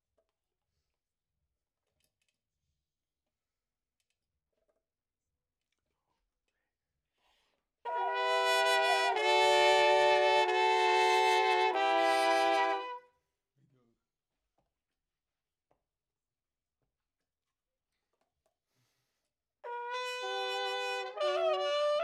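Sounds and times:
trumpet: 7.9 - 13.1, 19.6 - 22.0.

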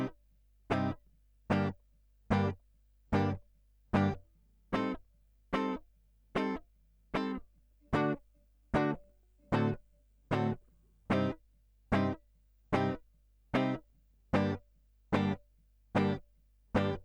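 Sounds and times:
guitar line: 0.7 - 1.7, 2.3 - 2.6, 3.2 - 3.4, 4.0 - 4.2, 4.8 - 5.0, 5.6 - 5.8, 6.4 - 6.6, 7.2 - 12.2, 12.8 - 13.0, 13.6 - 13.8, 14.4 - 14.6, 15.2 - 15.4, 16.0 - 16.2, 16.8 - 17.0.

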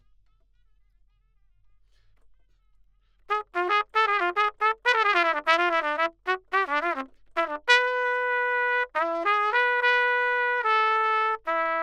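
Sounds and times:
trumpet: 3.3 - 11.8.

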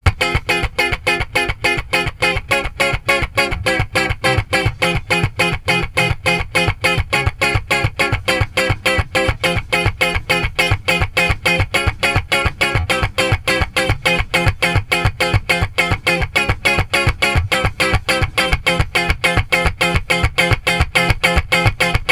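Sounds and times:
guitar: 0.0 - 22.1.

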